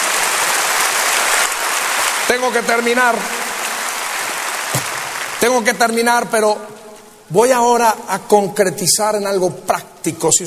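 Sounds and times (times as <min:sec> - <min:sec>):
audience applauding: 0:00.0 - 0:06.0
speech: 0:02.3 - 0:03.4, 0:05.4 - 0:10.4.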